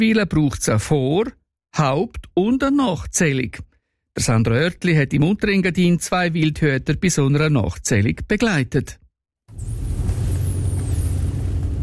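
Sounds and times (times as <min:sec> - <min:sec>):
speech: 0:00.0 - 0:09.8
car engine and road rumble driving into a dark forest at night: 0:09.6 - 0:11.8.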